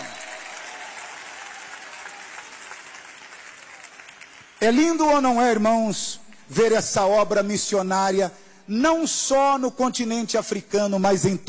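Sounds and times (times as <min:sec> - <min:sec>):
audience applauding: 0:00.0 - 0:04.6
speech: 0:04.6 - 0:11.4.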